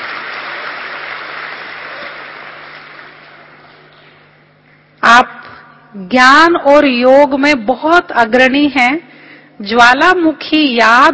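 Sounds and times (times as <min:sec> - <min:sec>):
audience applauding to welcome a speaker: 0:00.0 - 0:03.9
speech: 0:05.2 - 0:11.1.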